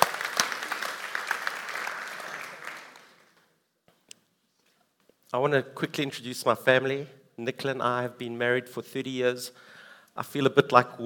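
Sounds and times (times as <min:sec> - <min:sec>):
church audience applause: 0:00.0 - 0:03.4
speech: 0:05.3 - 0:11.0.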